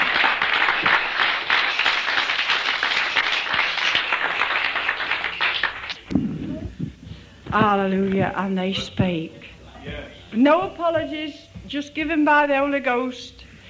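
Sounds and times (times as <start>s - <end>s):
crowd applauding: 0.0s - 6.4s
speech: 7.6s - 13.4s.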